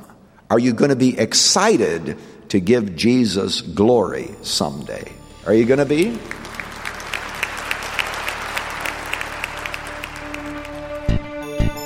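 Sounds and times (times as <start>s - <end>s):
speech: 0.5s - 6.5s
audience applauding: 5.6s - 11.8s.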